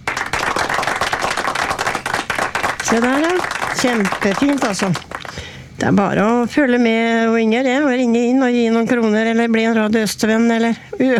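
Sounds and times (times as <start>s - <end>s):
many hand claps in a radio studio: 0.0s - 5.5s
speech: 2.9s - 11.1s.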